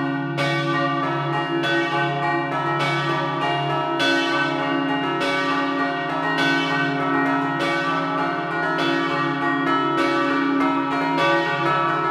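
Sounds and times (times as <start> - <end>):
church bells ringing a scampanottata in Rodeano Basso: 0.0 - 12.0.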